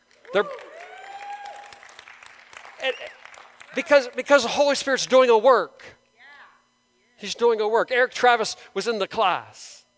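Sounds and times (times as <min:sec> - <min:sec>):
audience applause: 0:00.0 - 0:04.4
speech: 0:00.3 - 0:00.7, 0:02.8 - 0:06.0, 0:07.2 - 0:09.8.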